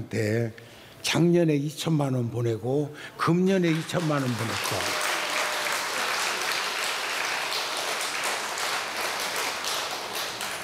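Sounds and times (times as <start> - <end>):
speech: 0.1 - 5.0
crowd applauding: 3.7 - 10.6.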